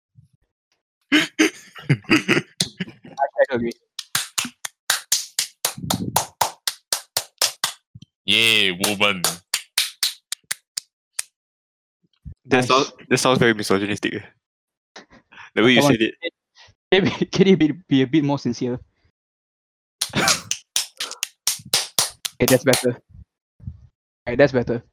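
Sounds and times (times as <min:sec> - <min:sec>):
voice or laughter: 0:01.1 - 0:03.4, 0:20.0 - 0:21.2
speech: 0:01.9 - 0:02.4, 0:03.6 - 0:03.8, 0:08.8 - 0:09.4, 0:12.5 - 0:14.4, 0:15.6 - 0:16.3, 0:16.9 - 0:18.9, 0:22.4 - 0:23.2, 0:24.3 - 0:24.9
hands clapping: 0:03.7 - 0:11.3, 0:20.0 - 0:22.9.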